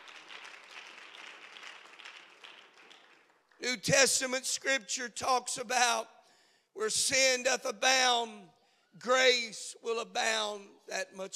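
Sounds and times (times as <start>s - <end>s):
seated audience clapping hands: 0.0s - 3.8s
speech: 3.6s - 6.2s, 6.8s - 11.3s.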